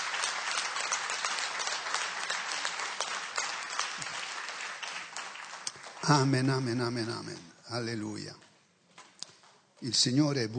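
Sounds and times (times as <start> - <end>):
audience applause: 0.0 - 6.9
speech: 6.1 - 8.4, 9.8 - 10.5.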